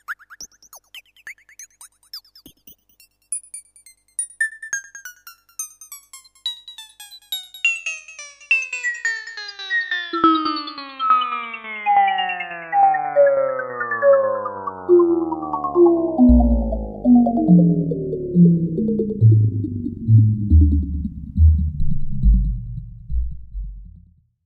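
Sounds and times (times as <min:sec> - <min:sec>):
analogue synthesizer sine sweep on a single note driven by a trapezoid generator: 0:09.4 - 0:24.0.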